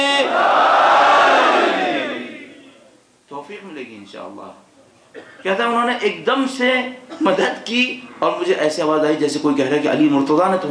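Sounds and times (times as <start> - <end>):
audience at a religious sermon shouting back to a call: 0.0 - 2.7
speech: 3.5 - 10.7.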